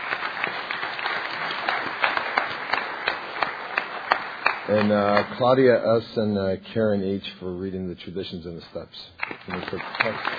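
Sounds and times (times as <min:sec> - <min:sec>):
audience applause: 0:00.0 - 0:05.7, 0:09.2 - 0:10.3
speech: 0:04.7 - 0:10.3.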